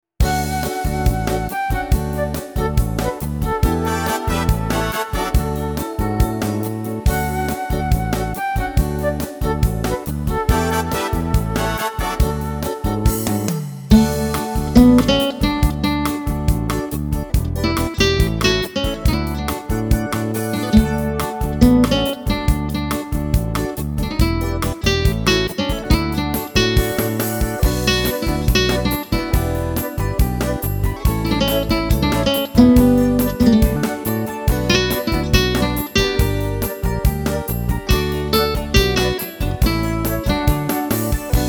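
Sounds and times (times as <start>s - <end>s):
Christmas bossa nova music: 0.2s - 41.4s.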